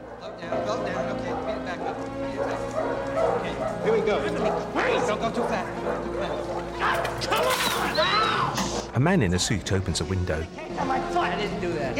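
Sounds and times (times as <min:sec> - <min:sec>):
dogs including a large black Labrador barking and whimpering in metal pens: 0:00.0 - 0:08.6
speech: 0:00.4 - 0:11.9.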